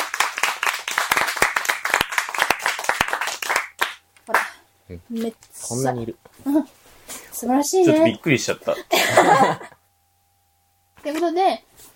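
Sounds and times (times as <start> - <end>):
group clapping: 0.0 - 4.6
speech: 4.9 - 6.8, 7.4 - 9.7, 11.1 - 11.7
laughter: 8.7 - 9.8.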